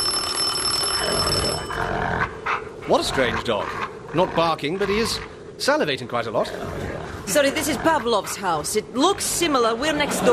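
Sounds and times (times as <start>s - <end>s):
doorbell ringing: 0.0s - 2.0s
speech: 2.9s - 10.3s.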